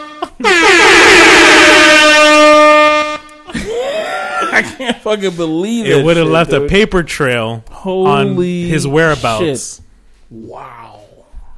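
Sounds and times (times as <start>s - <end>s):
air horn blast sound effect: 0.0s - 3.5s
laughter: 3.5s - 6.6s
speech: 4.6s - 11.0s.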